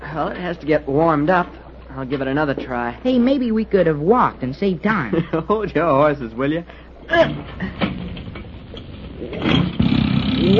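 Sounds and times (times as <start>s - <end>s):
speech: 0.2s - 8.0s
boat engine starting: 7.3s - 10.5s.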